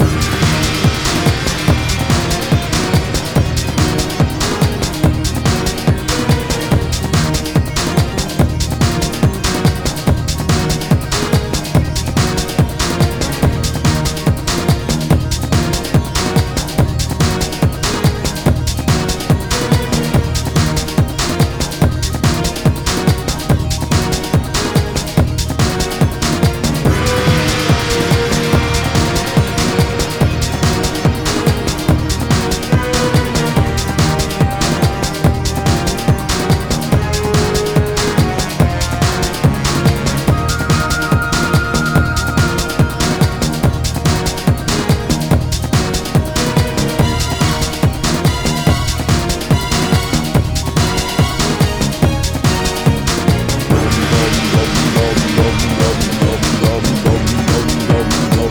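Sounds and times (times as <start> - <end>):
battle music loop: 0.0 - 58.5.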